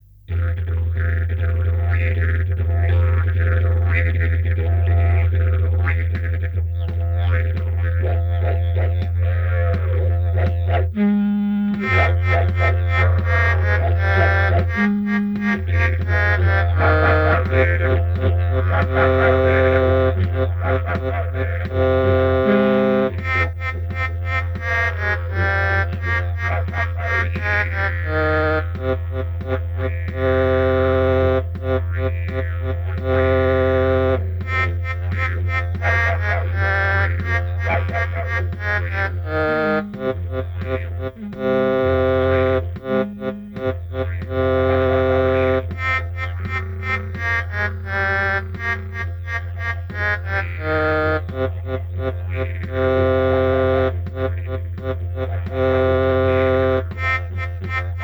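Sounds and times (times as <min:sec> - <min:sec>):
backing track: 0:00.0 - 0:58.0.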